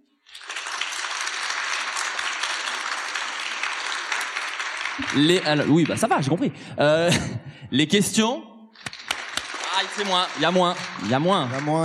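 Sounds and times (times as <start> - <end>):
audience applause vote: 0.3 - 6.4, 8.8 - 11.8
speech: 5.0 - 8.5, 10.0 - 11.8.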